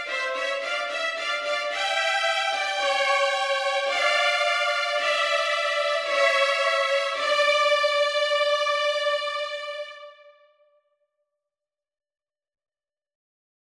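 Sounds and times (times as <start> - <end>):
backing track: 0.0 - 10.3.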